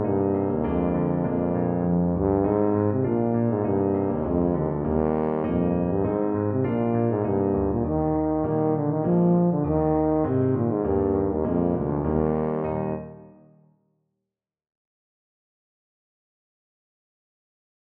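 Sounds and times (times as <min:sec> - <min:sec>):
tuba: 0:00.0 - 0:13.5.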